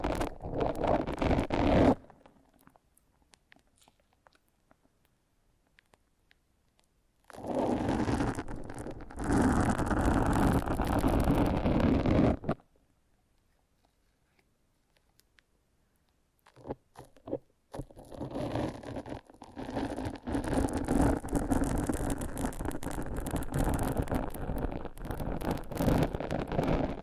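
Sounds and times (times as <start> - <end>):
foam being massaged: 0.0 - 2.0, 7.3 - 12.6, 18.0 - 27.0.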